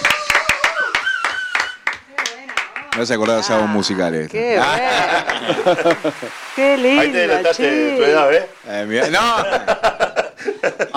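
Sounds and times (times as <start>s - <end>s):
hands clapping in a sharp regular rhythm: 0.0s - 3.6s, 5.2s - 6.2s
speech: 3.0s - 10.9s
laughter: 4.6s - 10.9s.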